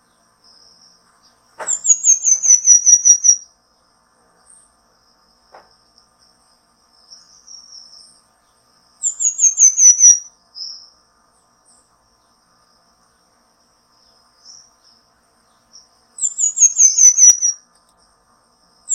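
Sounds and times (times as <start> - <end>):
Pin-tailed manakin song: 1.7 - 3.4, 9.0 - 10.8, 16.2 - 17.6.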